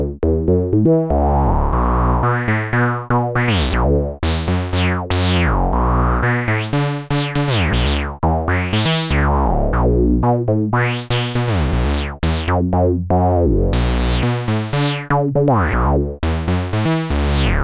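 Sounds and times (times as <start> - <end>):
two-oscillator synth bass: 0.0 - 17.6.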